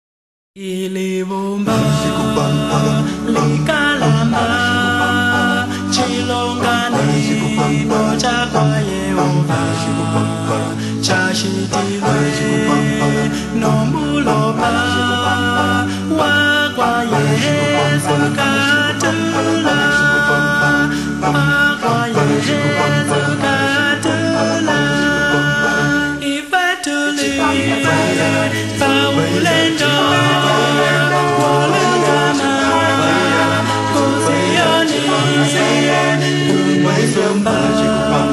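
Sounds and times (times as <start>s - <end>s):
Zambian a cappella singing: 0.6s - 38.3s.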